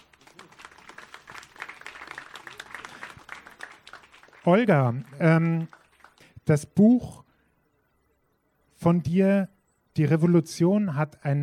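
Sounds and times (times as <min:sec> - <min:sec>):
audience applause: 0:00.0 - 0:06.3
speech: 0:04.4 - 0:05.8, 0:06.5 - 0:07.2, 0:08.8 - 0:11.4.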